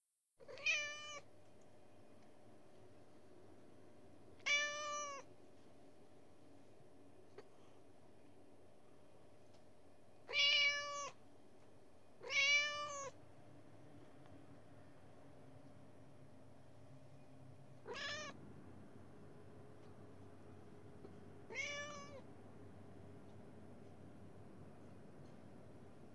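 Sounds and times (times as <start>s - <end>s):
Persian cat giving a nasal meow: 0.5s - 1.2s, 4.4s - 5.3s, 10.3s - 11.2s, 12.2s - 13.2s, 17.8s - 18.4s, 21.5s - 22.2s.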